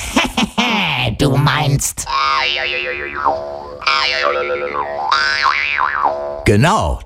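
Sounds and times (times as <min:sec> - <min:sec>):
speech: 0:01.2 - 0:07.0
jaw harp twanging imitating a grasshopper: 0:02.1 - 0:06.5.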